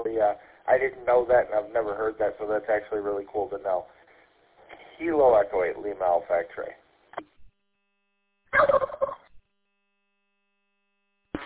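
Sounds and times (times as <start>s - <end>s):
speech: 0.2s - 4.0s, 5.0s - 7.3s, 8.5s - 9.0s
turkey gobble sound effect at transmission end: 8.5s - 9.3s.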